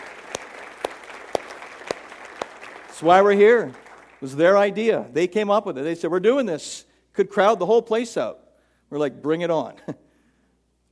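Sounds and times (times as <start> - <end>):
audience hand claps at a dinner event applauding volunteers: 0.0 - 4.3
speech: 3.0 - 10.0.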